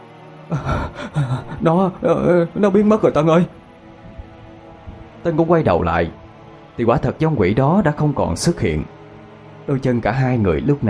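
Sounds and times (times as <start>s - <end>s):
person panting heavily out of breath: 0.5s - 1.7s
speech: 0.5s - 3.6s, 5.2s - 6.2s, 6.8s - 8.9s, 9.7s - 10.8s.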